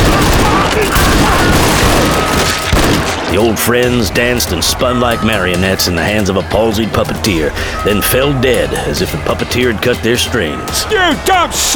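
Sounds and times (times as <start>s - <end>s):
gunfire from horse-mounted riders in a frontier-town street: 0.0s - 5.2s
speech: 3.4s - 11.7s.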